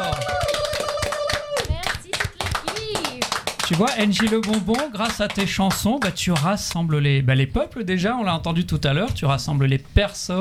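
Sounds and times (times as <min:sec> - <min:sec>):
audience applause: 0:00.0 - 0:06.5
speech: 0:03.7 - 0:10.3.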